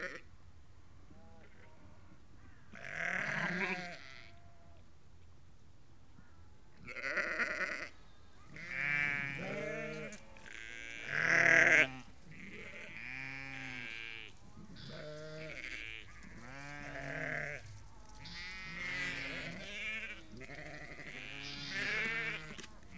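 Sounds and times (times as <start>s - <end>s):
flock of ewes and lambs bleating: 2.7s - 4.8s, 6.8s - 22.9s.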